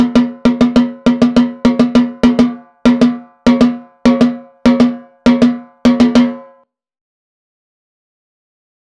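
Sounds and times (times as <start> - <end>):
Gahu drumming: 0.0 - 6.6.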